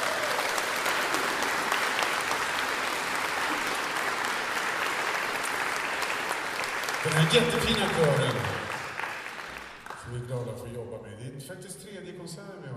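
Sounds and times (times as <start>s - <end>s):
large audience applause: 0.0s - 10.2s
speech: 7.0s - 8.5s, 10.1s - 12.7s.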